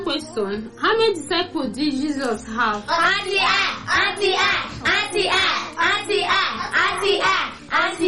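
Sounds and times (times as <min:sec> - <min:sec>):
speech: 0:00.1 - 0:08.0
group of people clapping hands: 0:03.4 - 0:08.0.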